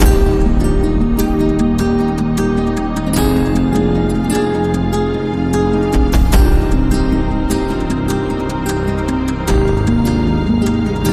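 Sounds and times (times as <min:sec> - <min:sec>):
cinematic music loop: 0:00.0 - 0:11.1.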